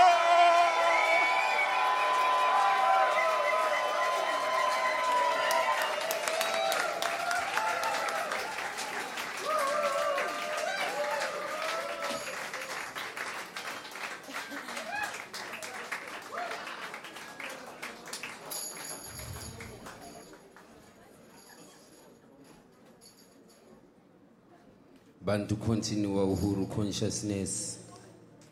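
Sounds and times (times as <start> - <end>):
concert audience cheering, whooping and applauding for a band at a music venue: 0.0 - 18.5, 19.1 - 20.0
speech: 25.3 - 27.8.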